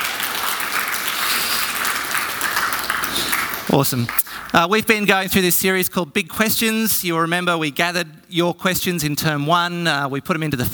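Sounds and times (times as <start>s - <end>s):
audience clapping: 0.0s - 4.7s
speech: 3.7s - 10.7s.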